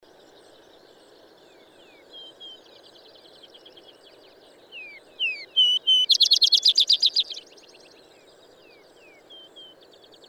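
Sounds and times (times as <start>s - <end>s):
bird singing high whistled notes: 4.8s - 7.4s.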